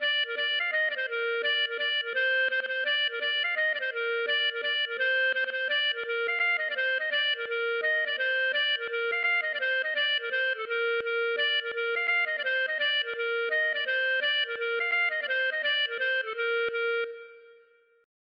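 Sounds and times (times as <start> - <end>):
gavotte: 0.0 - 18.0.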